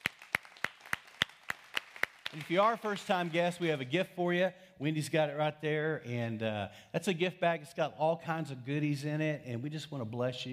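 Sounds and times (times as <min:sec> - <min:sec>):
audience clapping for guests: 0:00.0 - 0:04.1
speech: 0:02.3 - 0:10.5.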